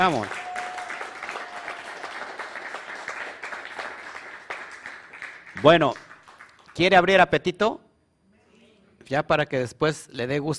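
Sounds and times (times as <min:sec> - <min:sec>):
speech: 0:00.0 - 0:00.4, 0:05.6 - 0:06.0, 0:06.8 - 0:07.8, 0:09.1 - 0:10.5
audience applause: 0:00.0 - 0:06.8.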